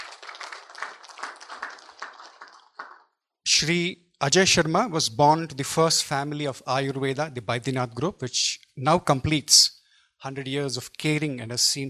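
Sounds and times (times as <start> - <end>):
round of applause: 0.0 - 3.2
speech: 3.6 - 11.8.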